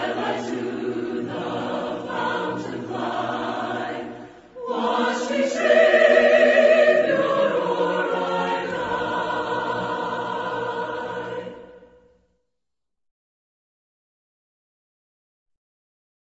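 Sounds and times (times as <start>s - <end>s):
a cappella hymn: 0.0s - 12.2s.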